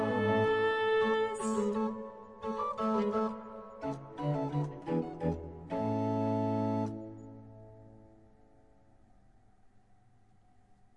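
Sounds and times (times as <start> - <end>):
soprano and alto aria: 0.0 - 7.0.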